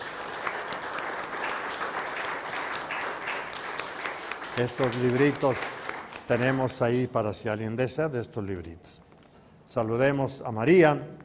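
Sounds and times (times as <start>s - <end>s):
applause: 0.0s - 7.1s
speech: 4.6s - 9.0s, 9.7s - 11.2s.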